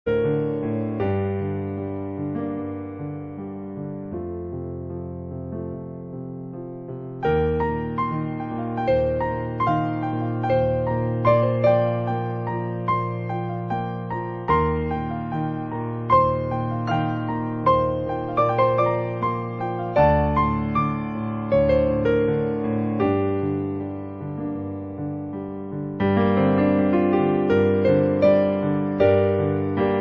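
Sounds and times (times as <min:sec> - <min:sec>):
piano: 0:00.0 - 0:29.9.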